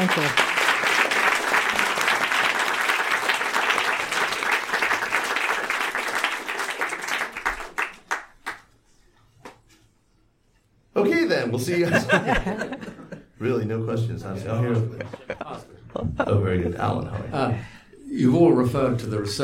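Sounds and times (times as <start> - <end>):
speech: 0.0 - 0.5, 11.6 - 12.8, 13.4 - 19.4
audience applause: 0.0 - 8.7
laughter: 11.7 - 13.6, 14.4 - 17.6.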